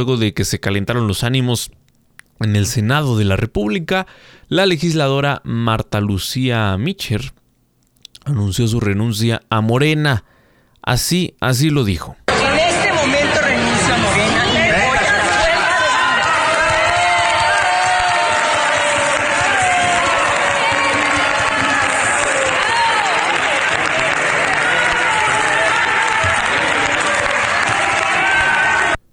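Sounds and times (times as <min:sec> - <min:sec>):
speech: 0:00.0 - 0:01.8, 0:02.4 - 0:07.4, 0:08.2 - 0:12.2
applause and cheering in the Senate: 0:12.3 - 0:29.0.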